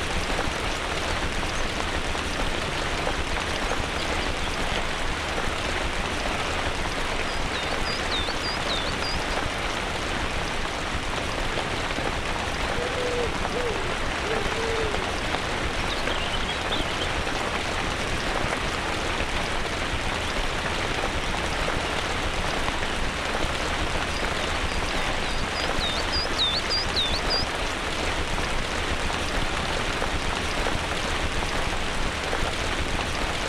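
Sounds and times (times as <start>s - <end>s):
downpour in a forest: 0.0s - 33.4s.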